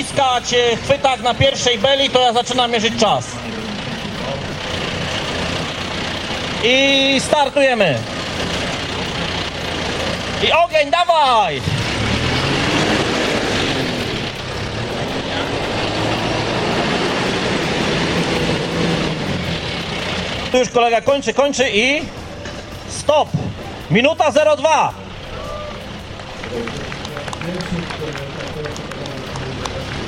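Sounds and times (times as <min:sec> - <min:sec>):
speech: 0:00.0 - 0:03.6, 0:06.6 - 0:08.6, 0:10.4 - 0:11.8, 0:20.5 - 0:22.2, 0:23.1 - 0:25.0, 0:26.5 - 0:26.8
John Deere tractor diesel engine rumbling and revving: 0:00.0 - 0:30.0.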